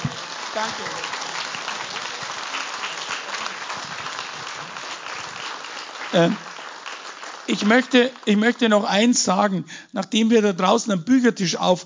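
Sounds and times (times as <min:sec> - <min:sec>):
audience applause: 0:00.0 - 0:09.2
speech: 0:00.6 - 0:01.2, 0:06.1 - 0:06.5, 0:07.5 - 0:11.8.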